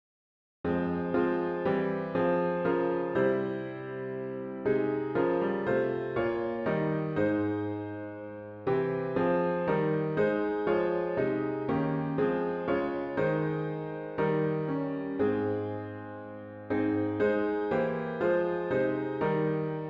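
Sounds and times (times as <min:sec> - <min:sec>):
solo piano: 0:00.7 - 0:19.8.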